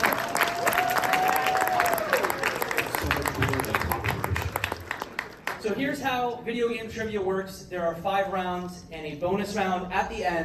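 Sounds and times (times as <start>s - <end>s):
applause: 0.0s - 5.7s
speech: 5.6s - 10.4s.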